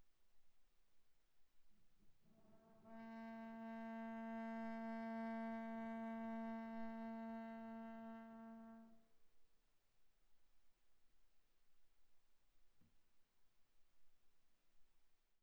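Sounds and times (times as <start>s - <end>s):
viola bowed on the A string: 2.4s - 9.1s.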